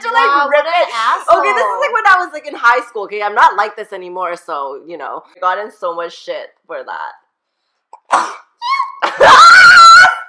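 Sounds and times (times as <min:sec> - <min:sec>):
speech: 0:00.2 - 0:07.2, 0:08.1 - 0:08.4, 0:09.0 - 0:10.1
person sneezing: 0:08.0 - 0:08.6.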